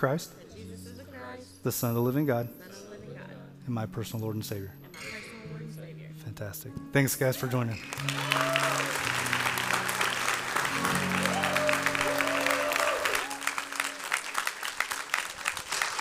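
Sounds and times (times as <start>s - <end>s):
speech: 0.0s - 0.7s, 1.6s - 2.9s, 3.7s - 5.6s, 6.4s - 9.1s
church audience applauding: 7.8s - 15.9s.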